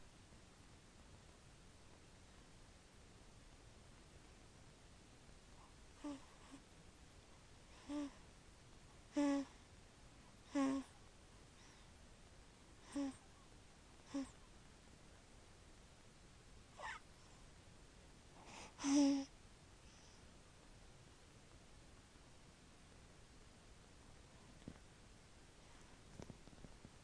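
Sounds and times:
sleeping baby: 0:05.5 - 0:08.3, 0:09.0 - 0:09.6, 0:10.3 - 0:11.9, 0:12.8 - 0:13.4, 0:14.0 - 0:14.4, 0:16.7 - 0:17.5, 0:18.3 - 0:20.3.

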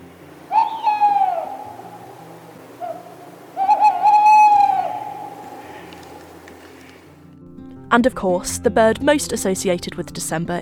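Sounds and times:
tawny owls calling: 0:00.0 - 0:07.1
speech: 0:07.9 - 0:10.6.

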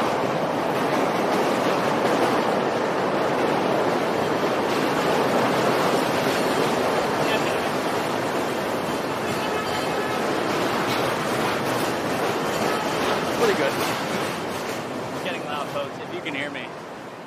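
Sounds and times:
elevated train passing overhead in Chicago: 0:00.0 - 0:17.2.

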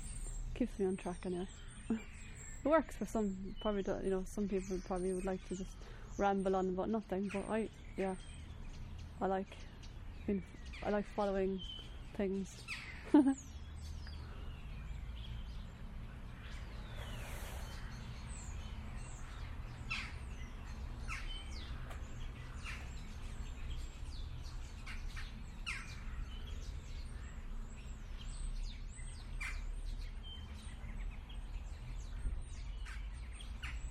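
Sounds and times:
many birds singing and chirping: 0:00.0 - 0:33.9
speech: 0:00.6 - 0:08.4, 0:09.2 - 0:09.7, 0:10.3 - 0:13.5.

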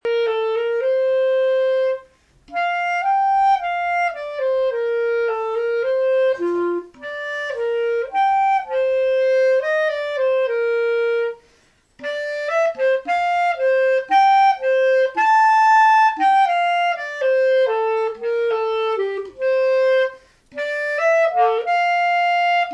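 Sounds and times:
clarinet: 0:00.0 - 0:22.7.

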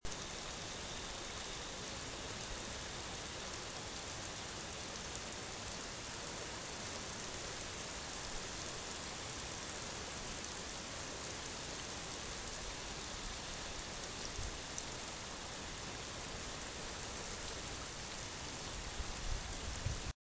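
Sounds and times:
heavy rain: 0:00.1 - 0:20.1.

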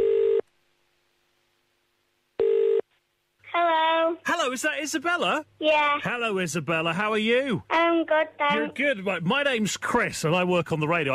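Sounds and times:
telephone number being dialed: 0:00.0 - 0:00.4, 0:02.4 - 0:02.8
speech: 0:04.5 - 0:11.1.

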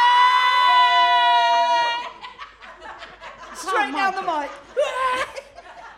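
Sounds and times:
live audience cheering: 0:00.0 - 0:02.2
laughter: 0:01.7 - 0:05.9.

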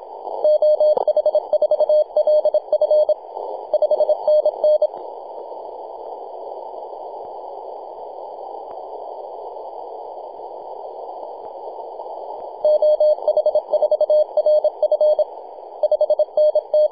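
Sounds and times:
morse code tones on 28.008 MHz: 0:00.4 - 0:04.9, 0:12.7 - 0:16.8.

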